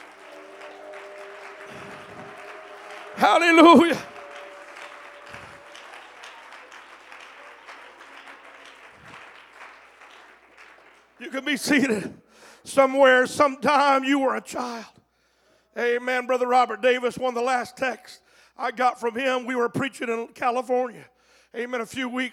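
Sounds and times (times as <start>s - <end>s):
audience clapping: 0.0s - 12.2s
speech: 3.2s - 4.1s, 11.4s - 15.0s, 15.8s - 22.3s.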